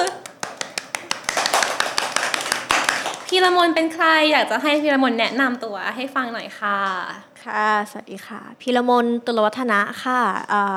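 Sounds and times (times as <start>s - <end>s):
hand clapping: 0.0s - 5.6s
voices chattering: 0.0s - 10.7s
speech: 3.3s - 10.7s.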